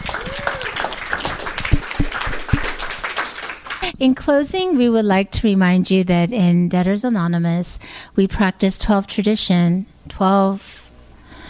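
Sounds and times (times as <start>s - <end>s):
audience applause: 0.0s - 3.9s
speech: 4.0s - 10.7s.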